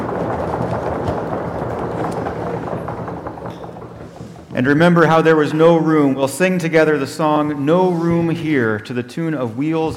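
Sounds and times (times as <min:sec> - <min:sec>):
audience knocking on wooden pews: 0:00.0 - 0:08.6
speech: 0:04.6 - 0:09.9.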